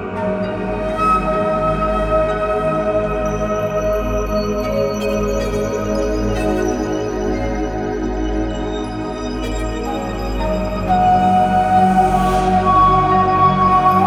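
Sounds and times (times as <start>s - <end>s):
new age synth wash: 0.2s - 14.0s.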